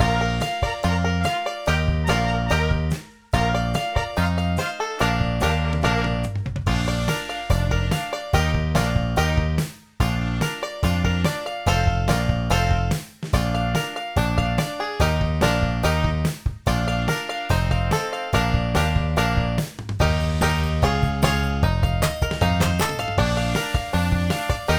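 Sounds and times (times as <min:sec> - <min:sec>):
music in B-flat: 0:00.0 - 0:24.7.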